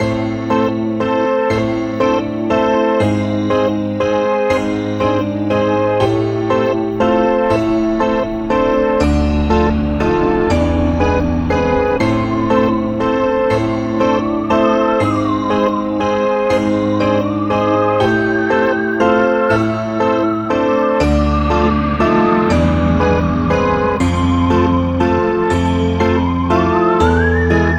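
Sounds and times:
Halloween loop: 0.0 - 27.7.

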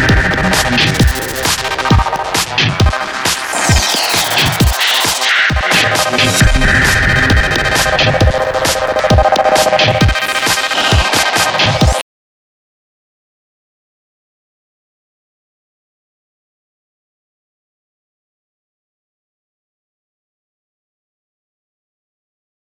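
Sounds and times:
hunt ambient loop: 0.0 - 12.0.

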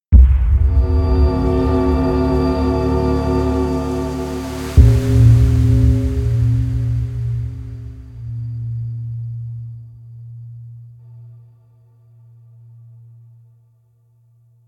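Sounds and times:
death music: 0.1 - 11.4.

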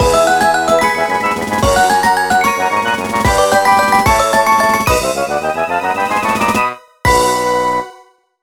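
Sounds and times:
jingle: 0.0 - 6.8.

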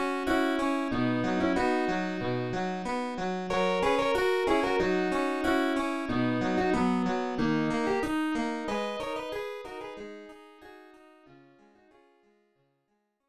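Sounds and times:
harpsichord: 0.0 - 10.3.

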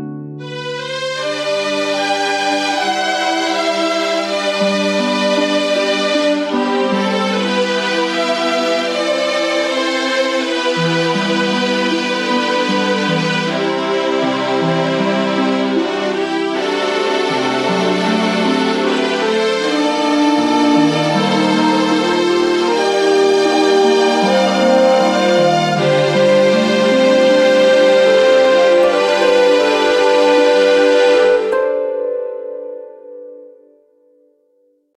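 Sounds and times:
fantasy background music: 0.4 - 33.6.

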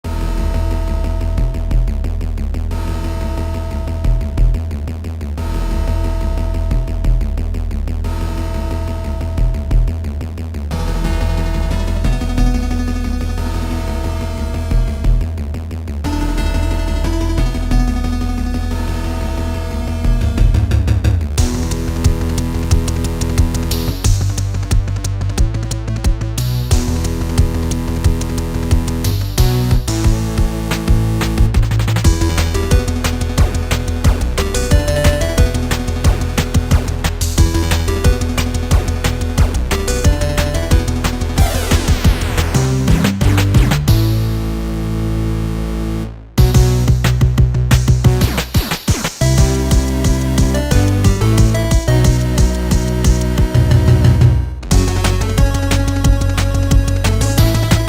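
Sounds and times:
8-bit chiptune: 0.0 - 57.8.

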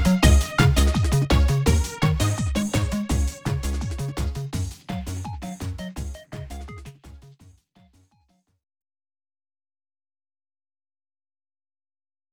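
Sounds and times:
karaoke theme backing track: 0.0 - 6.7.

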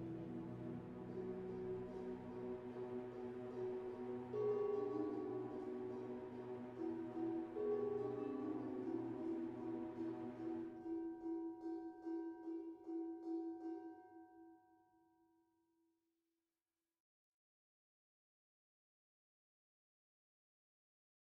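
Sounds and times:
world music: 0.0 - 14.3.

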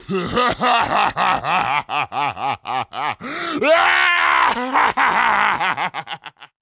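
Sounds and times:
person laughing crazily: 0.0 - 6.6.

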